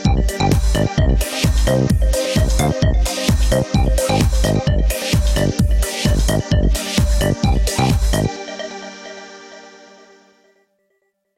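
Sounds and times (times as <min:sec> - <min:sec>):
boss fight music: 0:00.0 - 0:09.1.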